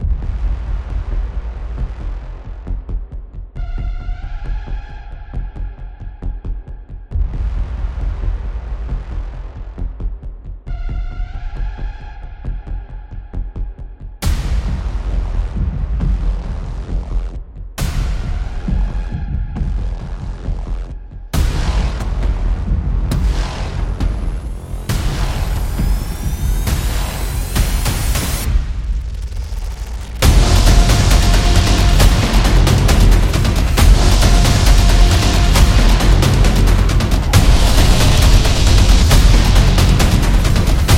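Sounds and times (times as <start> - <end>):
epic drums: 0.0 - 40.9
epic powerful intro: 21.4 - 40.9.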